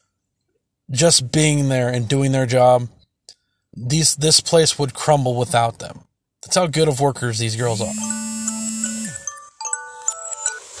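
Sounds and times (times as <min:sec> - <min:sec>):
speech: 0:00.9 - 0:03.0, 0:03.8 - 0:08.2
alarm going off: 0:07.8 - 0:09.3.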